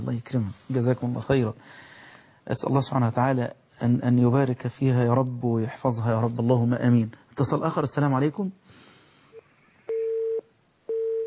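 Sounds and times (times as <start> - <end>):
speech: 0.1 - 8.6
telephone busy signal after a call cuts off: 9.9 - 11.2.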